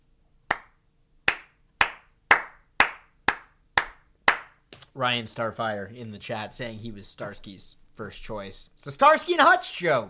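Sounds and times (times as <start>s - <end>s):
person golf clapping: 0.5s - 4.9s
speech: 5.0s - 10.0s.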